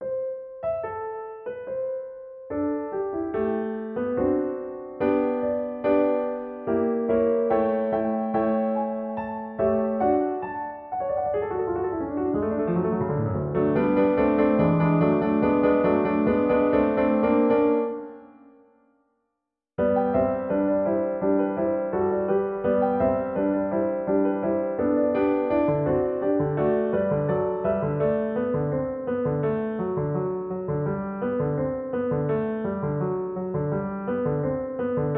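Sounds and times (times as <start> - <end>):
piano sketches: 0.0 - 19.1, 19.8 - 35.1.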